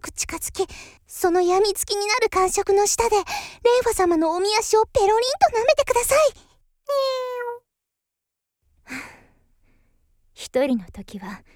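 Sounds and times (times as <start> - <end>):
speech: 0.0 - 7.3, 8.9 - 9.2, 10.4 - 11.5
cat meowing: 6.9 - 7.6.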